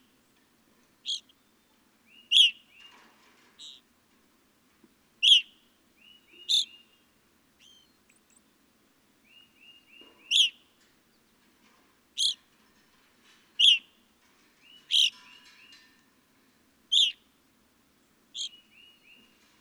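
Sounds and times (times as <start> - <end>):
evening grosbeak chirping: 1.0 - 2.9, 3.6 - 3.8, 5.2 - 7.0, 7.6 - 8.4, 9.3 - 10.6, 12.2 - 12.4, 14.7 - 15.7, 16.9 - 17.2, 18.3 - 19.4.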